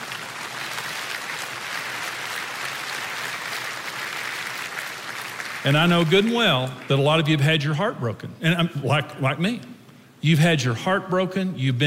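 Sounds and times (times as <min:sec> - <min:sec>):
audience applauding: 0:00.0 - 0:07.0
speech: 0:05.6 - 0:11.8.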